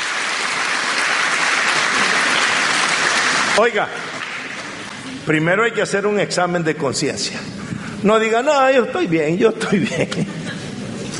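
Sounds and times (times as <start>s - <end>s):
applause: 0.0s - 5.0s
speech: 3.6s - 4.1s, 5.2s - 10.4s.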